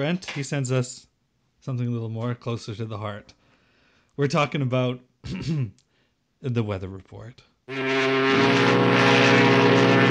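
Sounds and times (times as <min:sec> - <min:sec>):
speech: 0:00.0 - 0:03.4, 0:04.2 - 0:05.8, 0:06.4 - 0:09.2
fog horn: 0:07.7 - 0:10.0.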